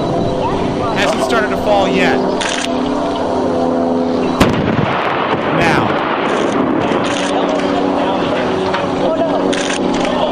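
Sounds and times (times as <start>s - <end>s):
droning hum: 0.0s - 10.2s
explosion boom producing a fireball: 4.4s - 7.2s.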